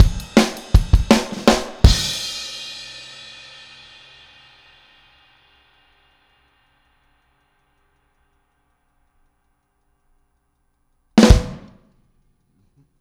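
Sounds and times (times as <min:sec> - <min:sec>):
outro full music mix with drums: 0:00.0 - 0:04.4, 0:11.2 - 0:11.7.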